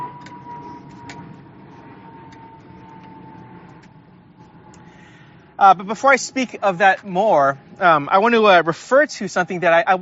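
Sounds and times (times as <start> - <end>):
airplane passing overhead: 0.0 - 10.0
speech: 5.6 - 10.0.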